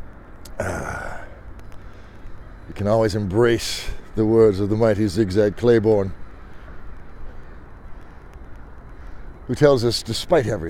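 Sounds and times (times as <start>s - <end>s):
steady dense rush: 0.0s - 10.6s
crows cawing outdoors: 0.5s - 2.6s, 6.2s - 9.4s
speech: 2.7s - 6.2s, 9.5s - 10.6s.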